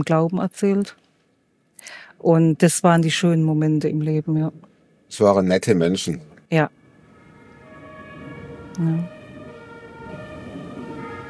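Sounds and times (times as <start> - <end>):
speech: 0.0 - 1.1, 1.8 - 6.8, 8.8 - 9.2
emergency vehicle siren passing: 6.6 - 11.2.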